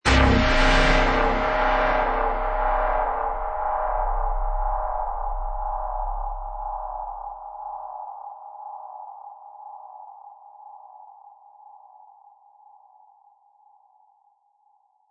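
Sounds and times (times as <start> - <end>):
dark lingering sci-fi hit: 0.0 - 7.6.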